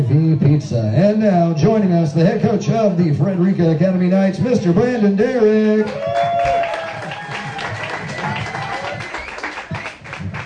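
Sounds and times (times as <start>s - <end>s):
speech: 0.1s - 6.6s
audience applause: 5.8s - 10.4s.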